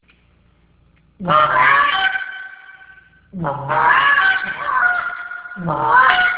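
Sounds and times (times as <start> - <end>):
speech: 1.2 - 1.7, 3.4 - 4.6, 5.6 - 6.2
goose honking: 1.2 - 6.3.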